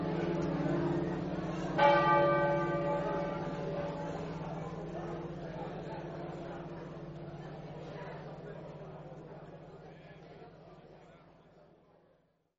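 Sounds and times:
church bells ringing: 0.0s - 7.3s.

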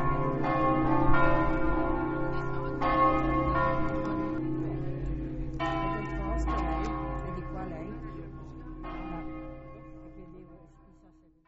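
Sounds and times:
bells ringing: 0.0s - 11.3s.

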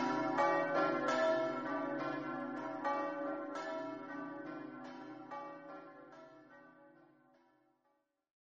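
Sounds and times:
bells ringing in Ovaro: 0.0s - 6.3s.

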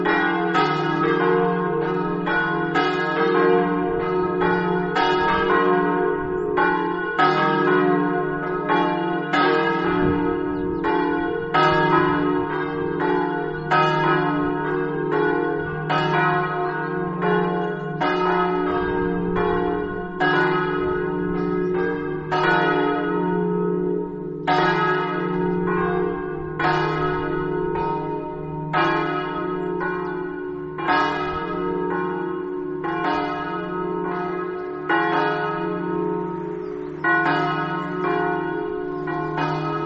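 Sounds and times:
bells: 0.0s - 39.8s.

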